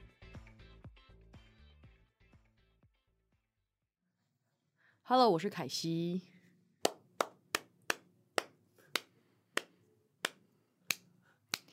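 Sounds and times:
speech: 5.1 - 6.3
hand clapping: 6.8 - 11.7.

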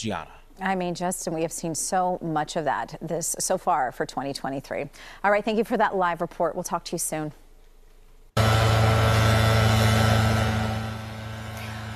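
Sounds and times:
speech: 0.0 - 7.4
East Bay crews' chainsaws powering up to cut tree branches: 8.4 - 11.9.

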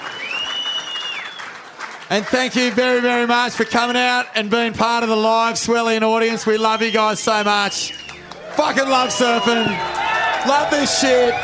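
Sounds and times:
audience applause for a performing group: 0.0 - 4.3, 7.6 - 11.4
speech: 2.1 - 8.0, 8.6 - 11.4.

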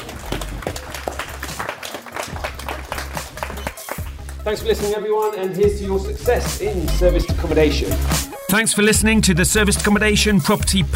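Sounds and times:
applause: 0.0 - 4.9
speech: 4.5 - 10.9.

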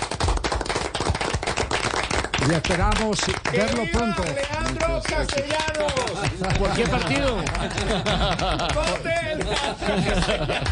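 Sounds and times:
audience applause: 0.0 - 10.6
speech: 2.4 - 10.6
laughter: 6.1 - 10.6.

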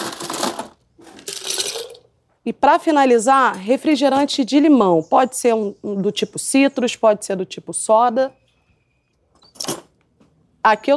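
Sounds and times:
ice dropped into drink: 0.0 - 2.0
speech: 2.4 - 8.4, 10.6 - 10.9.

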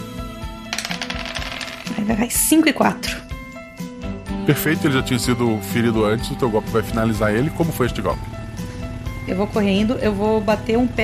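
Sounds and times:
pair of dice rattling across a hard surface: 0.7 - 2.1
speech: 2.1 - 3.2, 4.5 - 8.4, 9.3 - 11.0.

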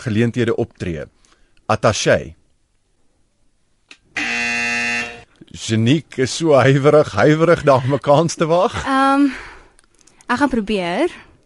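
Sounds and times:
speech: 0.0 - 2.4, 5.5 - 9.5, 10.3 - 11.3
quiz buzzer: 4.2 - 5.3.

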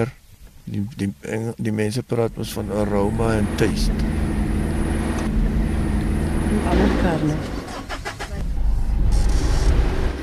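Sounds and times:
speech: 0.0 - 4.2, 6.5 - 7.6
pickup truck engine rumble: 1.1 - 10.2.

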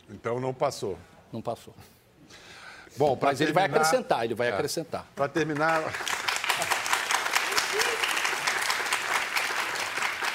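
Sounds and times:
speech: 0.1 - 2.4, 3.0 - 6.1
audience applauding: 5.4 - 10.3.

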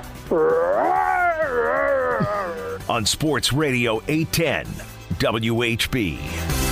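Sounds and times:
speech: 0.3 - 1.7, 2.9 - 6.7
man imitating a Wookiee roar: 0.3 - 2.9.

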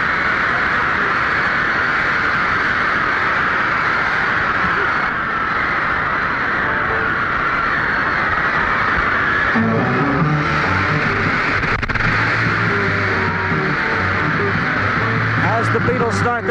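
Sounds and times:
concert crowd roaring and shouting at the Hollywood Bowl: 0.0 - 16.4.

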